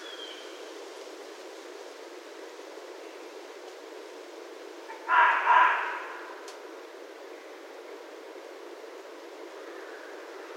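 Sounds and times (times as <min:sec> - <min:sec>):
faint hiss: 0:00.0 - 0:10.5
red fox barking: 0:04.9 - 0:06.4.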